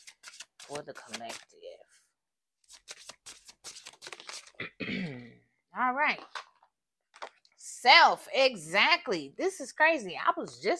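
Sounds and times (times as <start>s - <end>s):
rune cards pulled from a deck rustling: 0.0s - 1.6s, 2.6s - 4.6s
speech: 0.7s - 2.0s, 5.8s - 6.4s, 7.8s - 10.7s.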